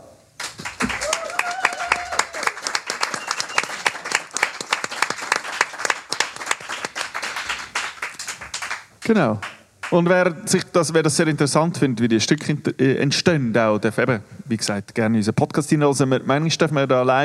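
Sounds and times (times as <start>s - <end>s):
crowd applause: 0.4s - 10.0s
rising whistle or cheer: 1.0s - 4.0s
speech: 9.1s - 17.2s.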